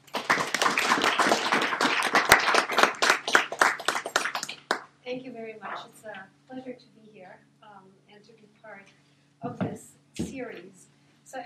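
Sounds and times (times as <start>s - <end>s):
audience applauding welcoming a speaker to a university lecture: 0.0s - 4.9s
speech: 5.1s - 10.7s.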